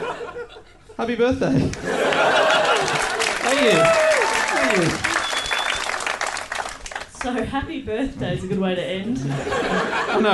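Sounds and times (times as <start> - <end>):
laughter: 0.0 - 1.0, 1.7 - 5.2, 9.1 - 10.3
speech: 0.5 - 2.4, 3.6 - 4.0, 4.7 - 5.1, 7.2 - 10.3
audience applause: 1.8 - 7.3.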